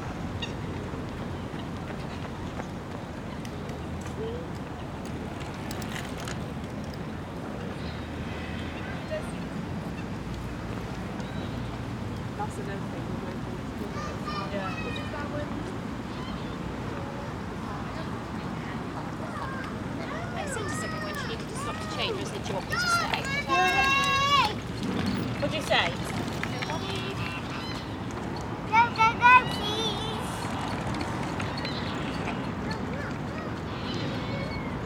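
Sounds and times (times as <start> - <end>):
park soundscape: 0.0 - 34.8.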